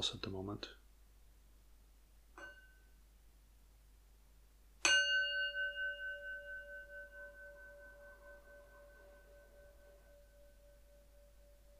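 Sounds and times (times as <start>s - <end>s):
meditation bell ringing: 4.8s - 11.7s.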